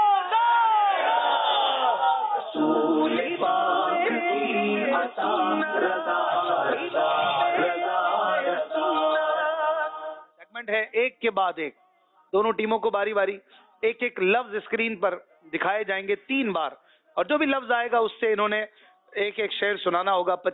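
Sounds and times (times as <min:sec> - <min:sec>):
crowd chanting response to a slogan: 0:00.0 - 0:10.4
speech: 0:10.7 - 0:20.5.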